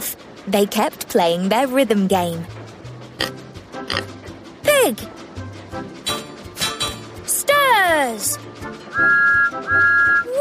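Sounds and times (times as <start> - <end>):
speech: 0.4 - 2.6, 3.2 - 3.4, 4.8 - 5.1, 7.9 - 9.2
whistle blowing: 8.9 - 10.3.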